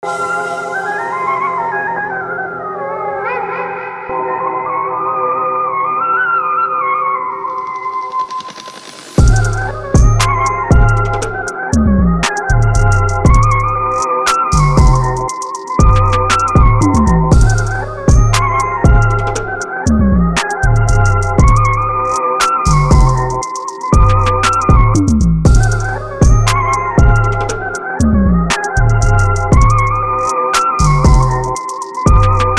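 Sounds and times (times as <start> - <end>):
background music: 0.0 - 32.5.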